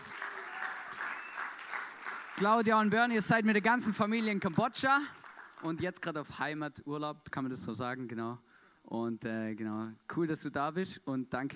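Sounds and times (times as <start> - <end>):
crowd applause: 0.0 - 5.7
speech: 2.4 - 11.5.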